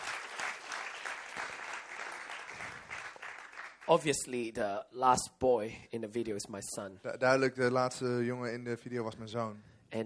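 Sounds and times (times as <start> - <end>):
church audience applause for the video crew: 0.0 - 4.1
speech: 3.9 - 10.0.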